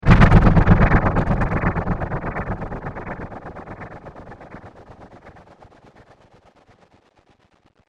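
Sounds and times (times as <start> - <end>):
heavy rippled impact: 0.0 - 5.3.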